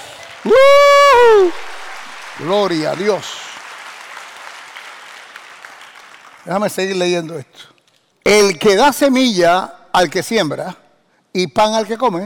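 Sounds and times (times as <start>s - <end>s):
audience applause: 0.0s - 6.8s
speech: 0.4s - 0.8s, 2.4s - 3.4s, 6.4s - 10.8s, 11.4s - 12.2s.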